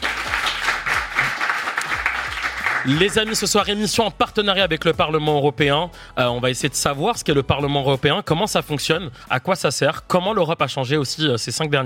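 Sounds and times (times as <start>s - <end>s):
studio audience applause: 0.0s - 3.6s
speech: 2.8s - 11.8s.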